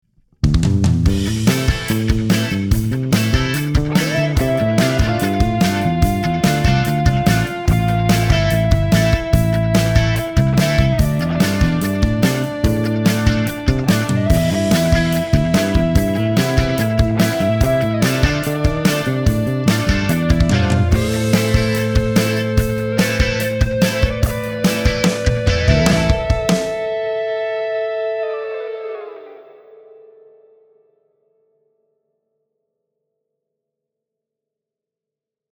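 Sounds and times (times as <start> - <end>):
bass drum recorded on a Neve 88RS: 0.4 - 26.8
guitar: 0.4 - 31.7.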